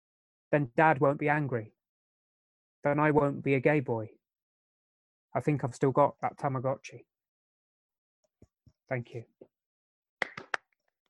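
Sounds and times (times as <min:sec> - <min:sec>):
speech: 0:00.5 - 0:01.8, 0:02.8 - 0:04.2, 0:05.3 - 0:07.1, 0:08.9 - 0:09.5
hand claps: 0:10.2 - 0:11.0.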